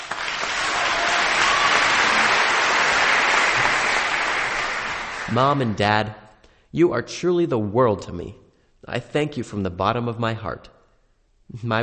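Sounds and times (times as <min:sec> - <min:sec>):
large audience applause for parents: 0:00.0 - 0:05.7
speech: 0:05.3 - 0:10.7, 0:11.5 - 0:11.8.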